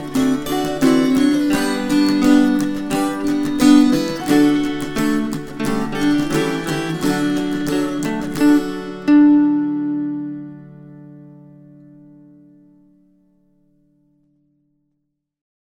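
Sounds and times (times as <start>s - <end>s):
string choir: 0.0s - 10.6s.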